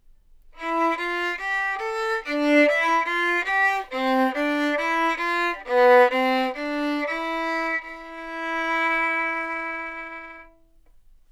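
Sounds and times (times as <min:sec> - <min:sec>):
tender violin samples: 0:00.6 - 0:11.0.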